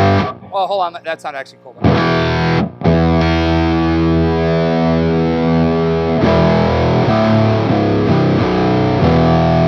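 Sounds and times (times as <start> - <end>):
choppy rhythmic electric guitar strums: 0.0 - 9.6
speech: 0.5 - 3.0
electric guitar chord through octave fuzz pedal: 1.8 - 9.6.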